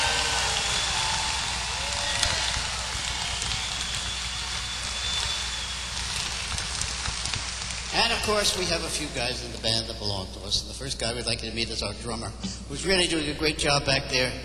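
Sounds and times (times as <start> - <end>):
audience applause: 0.0 - 9.5
speech: 8.2 - 14.4.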